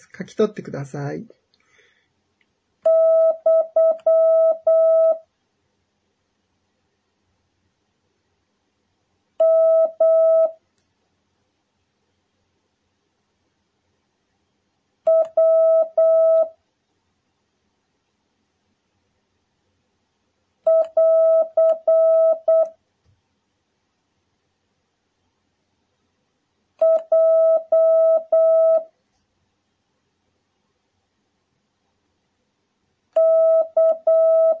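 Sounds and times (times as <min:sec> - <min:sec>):
speech: 0:00.0 - 0:01.4
Morse code tones keying Japanese kana characters: 0:02.9 - 0:05.2, 0:09.4 - 0:10.6, 0:15.1 - 0:16.5, 0:20.7 - 0:22.7, 0:26.8 - 0:28.9, 0:33.2 - 0:34.5.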